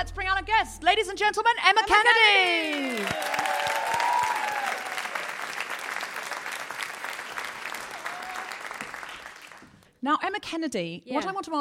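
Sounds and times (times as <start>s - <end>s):
speech: 0.0s - 3.7s, 10.0s - 11.6s
audience applause welcoming guest: 2.3s - 9.8s.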